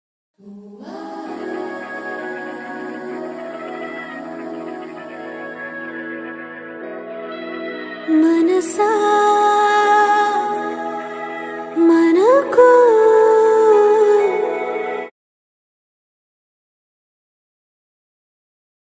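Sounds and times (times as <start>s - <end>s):
emotional song: 0.4s - 15.1s.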